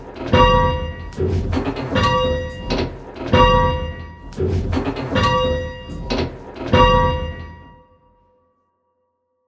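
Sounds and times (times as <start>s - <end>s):
bells: 0.2s - 1.2s, 1.9s - 4.4s, 5.1s - 6.1s, 6.7s - 8.2s.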